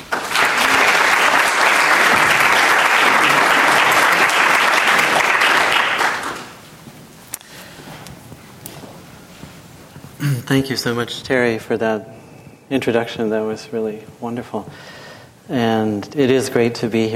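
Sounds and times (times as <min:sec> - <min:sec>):
audience applause welcoming a speaker at the Modern: 0:00.0 - 0:06.7
speech: 0:10.5 - 0:17.1.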